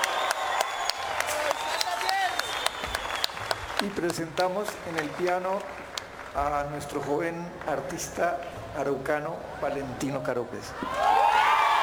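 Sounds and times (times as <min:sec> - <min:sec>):
audience applause: 0:00.0 - 0:06.9
speech: 0:03.8 - 0:11.1.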